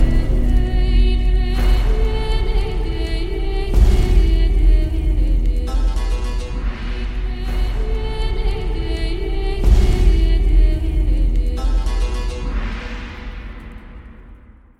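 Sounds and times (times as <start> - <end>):
background music ringtone: 0.0 - 14.7.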